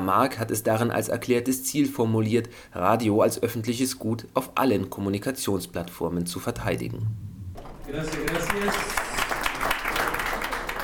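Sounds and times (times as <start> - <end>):
speech: 0.0 - 7.3, 7.9 - 9.0
crowd applauding: 7.6 - 10.8.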